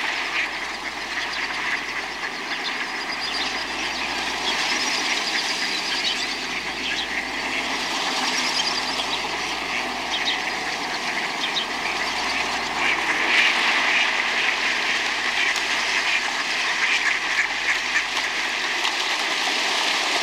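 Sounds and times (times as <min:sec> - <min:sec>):
ducks quacking in a flock: 0:00.0 - 0:20.2.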